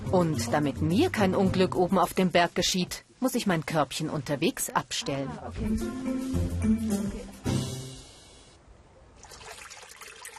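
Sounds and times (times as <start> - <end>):
speech: 0.1 - 7.2
water trickling at a sacred spring: 9.1 - 10.3.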